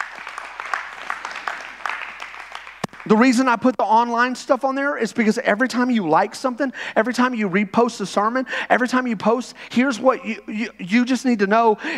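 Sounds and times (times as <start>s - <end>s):
audience applause: 0.0s - 3.2s
speech: 3.1s - 11.9s.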